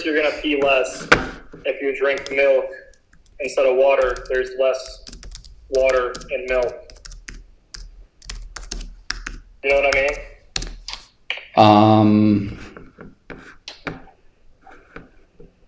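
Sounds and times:
speech: 0:00.0 - 0:02.8, 0:03.4 - 0:05.1, 0:05.7 - 0:06.8, 0:09.6 - 0:10.3, 0:11.6 - 0:12.6
typing on a computer keyboard: 0:00.5 - 0:00.8, 0:02.1 - 0:11.1.

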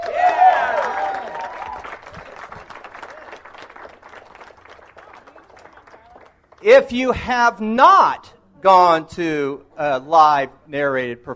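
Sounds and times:
audience applause: 0:00.0 - 0:06.7
speech: 0:06.6 - 0:11.3.

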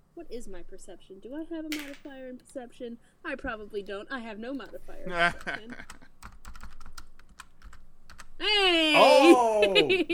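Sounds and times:
speech: 0:00.2 - 0:06.1, 0:08.4 - 0:10.1
fast typing on a computer keyboard: 0:05.3 - 0:08.3
laughter: 0:09.0 - 0:10.1.

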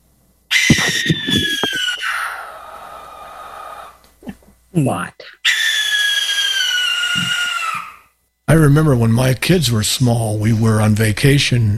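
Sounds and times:
barn owl screech: 0:00.5 - 0:04.0, 0:05.4 - 0:08.1
speech: 0:04.8 - 0:05.4, 0:08.5 - 0:11.7.

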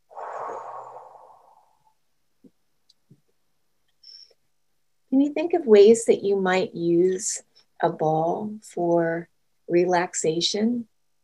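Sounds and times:
loud deliberate exhale during a relaxation breathing exercise: 0:00.1 - 0:01.9
speech: 0:05.2 - 0:10.9.

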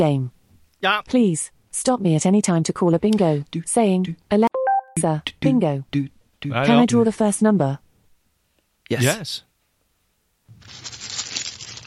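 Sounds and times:
speech: 0:00.0 - 0:07.8, 0:08.9 - 0:09.5, 0:10.6 - 0:11.0
paper being handled: 0:10.5 - 0:11.8.

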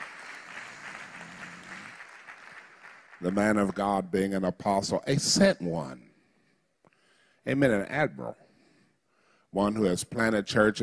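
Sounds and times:
church congregation clapping in honor of an apostle and pastor: 0:00.0 - 0:04.4
speech: 0:03.2 - 0:06.1, 0:07.4 - 0:08.4, 0:09.5 - 0:10.8.

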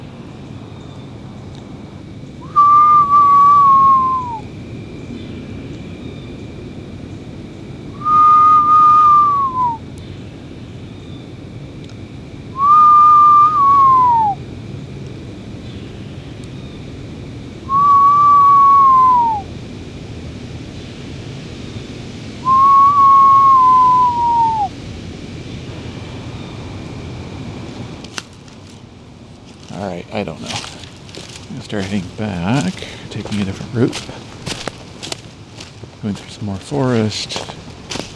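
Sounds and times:
screech owl calling: 0:02.4 - 0:04.5, 0:07.9 - 0:14.4, 0:17.6 - 0:19.6, 0:22.4 - 0:24.8, 0:28.2 - 0:38.1
speech: 0:31.8 - 0:32.6, 0:33.8 - 0:34.2, 0:36.0 - 0:37.5.

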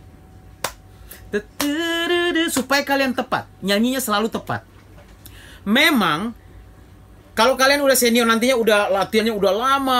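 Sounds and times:
rhythmic hand clapping: 0:00.6 - 0:00.8, 0:01.6 - 0:02.8
speech: 0:01.3 - 0:04.7, 0:05.6 - 0:06.4, 0:07.4 - 0:09.9.

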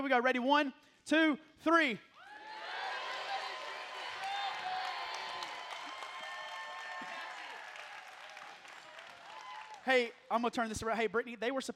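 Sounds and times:
speech: 0:00.0 - 0:02.1, 0:09.8 - 0:11.7
group clapping and cheering: 0:02.1 - 0:10.2.

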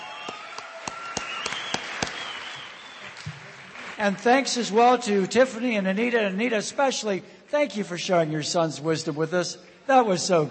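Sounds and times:
audience applause: 0:00.0 - 0:04.5
speech: 0:04.0 - 0:10.4.

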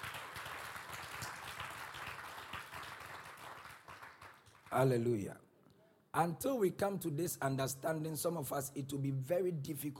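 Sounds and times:
audience hand clapping: 0:00.0 - 0:05.0
speech: 0:04.7 - 0:05.5, 0:06.1 - 0:09.9.

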